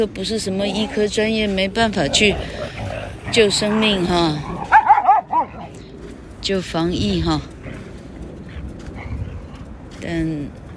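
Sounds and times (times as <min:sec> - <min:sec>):
speech: 0:00.0 - 0:04.5, 0:06.4 - 0:07.5, 0:10.0 - 0:10.6
dog barking: 0:04.6 - 0:05.6.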